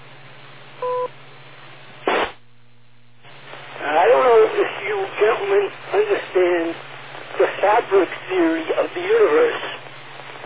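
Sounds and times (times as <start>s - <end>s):
two-tone timing beep over radio: 0.8s - 1.1s
radio static burst: 2.0s - 2.4s, 3.2s - 10.4s.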